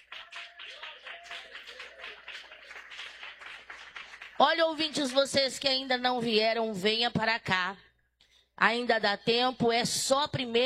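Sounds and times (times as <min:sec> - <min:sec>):
audience clapping: 0:00.0 - 0:05.6
speech: 0:04.4 - 0:07.8, 0:08.6 - 0:10.6.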